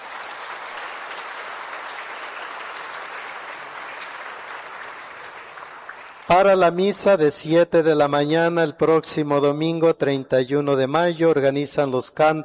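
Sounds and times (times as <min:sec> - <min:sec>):
audience applauding: 0:00.0 - 0:06.9
speech: 0:06.3 - 0:12.4.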